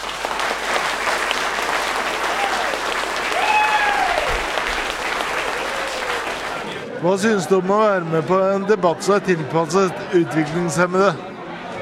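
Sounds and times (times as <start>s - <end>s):
audience applause: 0.0s - 6.9s
faint whistles and cheers: 2.2s - 4.8s
speech: 7.0s - 11.3s.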